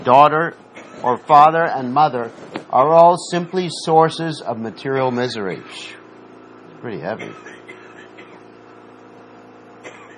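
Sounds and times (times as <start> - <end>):
speech: 0.0 - 6.0, 6.8 - 7.5
coughing: 0.7 - 1.6, 7.1 - 8.6, 9.8 - 10.1.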